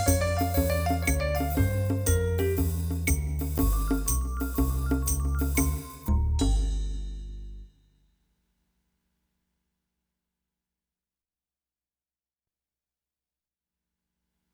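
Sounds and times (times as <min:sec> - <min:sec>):
hot music riffs: 0:00.0 - 0:07.6.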